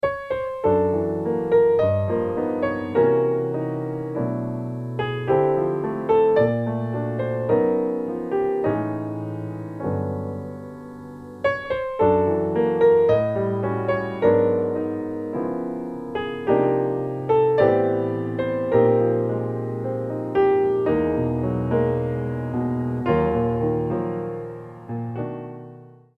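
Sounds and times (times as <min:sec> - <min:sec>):
solo piano: 0:00.0 - 0:26.1.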